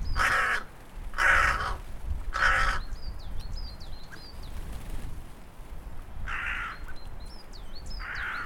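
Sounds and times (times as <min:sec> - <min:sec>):
hooded crow calling: 0:00.1 - 0:03.0, 0:06.2 - 0:07.0, 0:08.0 - 0:08.4.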